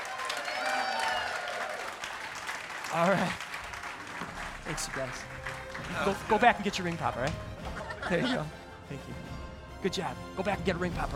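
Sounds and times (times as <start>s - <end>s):
church congregation cheering voices: 0.0s - 3.4s
church congregation clapping as a skit cast takes a bow: 0.0s - 8.0s
speech: 2.9s - 3.4s, 4.7s - 11.1s
laughter: 5.8s - 8.6s.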